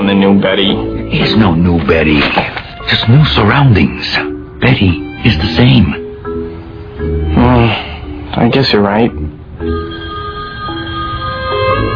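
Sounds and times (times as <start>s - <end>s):
speech: 0.2s - 6.0s, 7.6s - 9.8s
telephone ringing: 9.6s - 11.9s.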